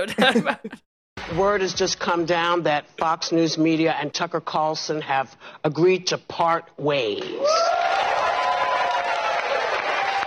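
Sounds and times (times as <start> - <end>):
laughter: 0.0 - 0.8
speech: 0.0 - 8.1
studio audience cheering and clapping while doing the wave: 7.3 - 10.2.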